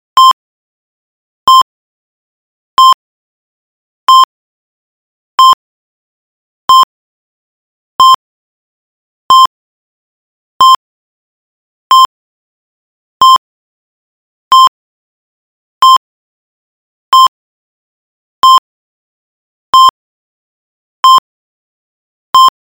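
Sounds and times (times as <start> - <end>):
heart rate monitor beeps: 0.1 - 0.4, 1.5 - 1.7, 2.8 - 3.0, 4.1 - 4.3, 5.4 - 5.6, 6.7 - 6.9, 8.0 - 8.2, 9.3 - 9.5, 10.6 - 10.8, 11.9 - 12.1, 13.2 - 13.4, 14.5 - 14.7, 15.8 - 16.0, 17.1 - 17.3, 18.4 - 18.6, 19.7 - 20.0, 21.0 - 21.2, 22.4 - 22.6.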